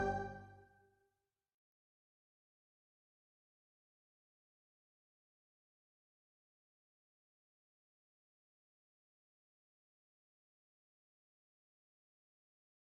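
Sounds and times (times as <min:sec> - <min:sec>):
instrumental music: 0:00.0 - 0:00.6.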